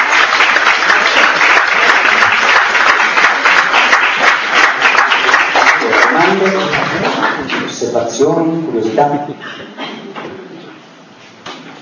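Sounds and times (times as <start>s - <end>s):
audience applause: 0.0s - 7.8s
speech: 8.2s - 9.8s.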